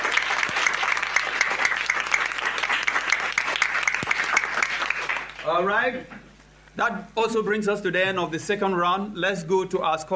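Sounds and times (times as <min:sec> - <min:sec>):
round of applause: 0:00.0 - 0:05.6
speech: 0:05.5 - 0:06.2, 0:06.8 - 0:10.1.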